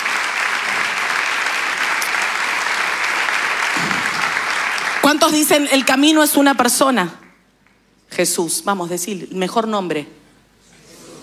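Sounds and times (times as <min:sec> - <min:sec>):
audience applauding: 0:00.0 - 0:06.4
speech: 0:05.1 - 0:07.2, 0:08.2 - 0:10.2.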